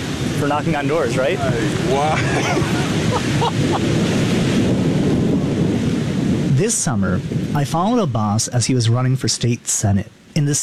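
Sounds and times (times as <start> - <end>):
rain: 0.0 - 10.6
speech: 0.4 - 4.5, 6.6 - 10.6
laughter: 0.5 - 4.6
thunder: 2.9 - 6.6.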